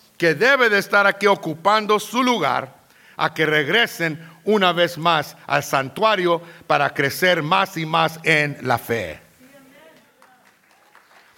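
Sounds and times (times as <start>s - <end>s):
speech: 0.2s - 9.2s
scattered audience applause: 9.8s - 11.3s.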